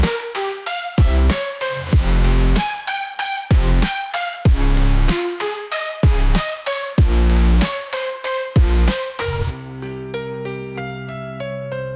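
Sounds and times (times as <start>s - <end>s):
EDM music: 0.0s - 9.6s.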